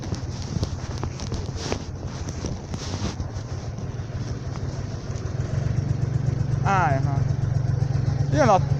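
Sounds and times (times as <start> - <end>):
heavy wind buffeting on the microphone: 0.0 - 6.3
taxi approaching on a street: 0.0 - 8.7
speech: 8.4 - 8.7.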